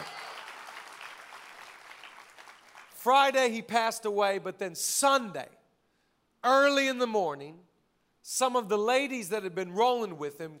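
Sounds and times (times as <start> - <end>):
audience clapping: 0.0 - 3.0
speech: 3.0 - 5.6, 6.4 - 10.5.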